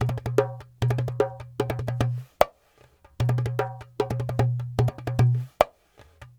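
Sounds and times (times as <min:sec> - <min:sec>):
dumbek goblet drum: 0:00.0 - 0:02.3, 0:03.2 - 0:05.5.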